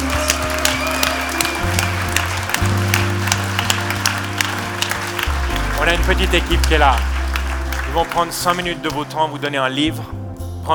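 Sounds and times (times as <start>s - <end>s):
audience applauding loudly: 0.0s - 10.0s
low sustained keyboard or organ chords: 0.0s - 10.7s
speech: 5.8s - 7.1s, 7.9s - 10.7s.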